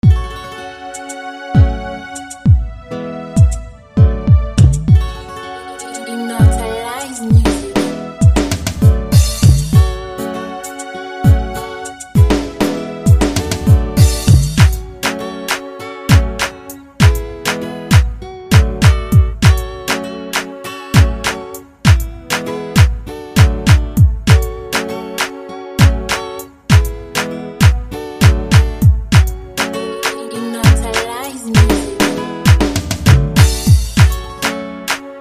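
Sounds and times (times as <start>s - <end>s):
Afrobeats music: 0.0s - 35.1s.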